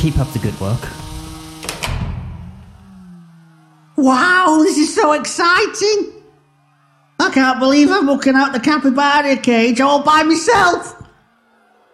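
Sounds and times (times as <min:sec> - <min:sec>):
speech: 0:00.0 - 0:01.1, 0:04.0 - 0:06.2, 0:07.2 - 0:11.0
door closing with heavy thud: 0:01.6 - 0:02.6.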